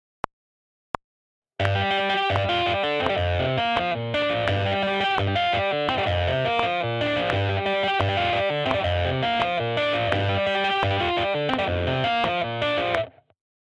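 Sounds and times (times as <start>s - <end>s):
metal rhythm guitar: 1.6s - 13.1s.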